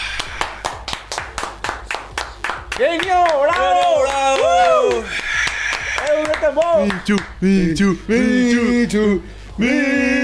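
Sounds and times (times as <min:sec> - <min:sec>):
applause: 0:00.0 - 0:07.3
speech: 0:02.8 - 0:03.6, 0:06.5 - 0:10.2.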